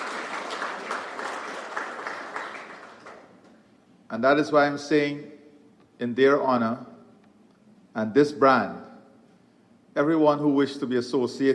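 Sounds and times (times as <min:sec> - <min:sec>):
audience applause: 0:00.0 - 0:03.4
speech: 0:04.1 - 0:05.4, 0:06.0 - 0:06.9, 0:08.0 - 0:08.9, 0:10.0 - 0:11.5.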